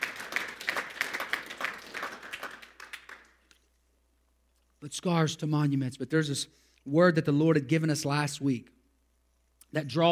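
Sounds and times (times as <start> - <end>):
audience clapping: 0.0 - 3.6
speech: 4.8 - 8.8, 9.7 - 10.1.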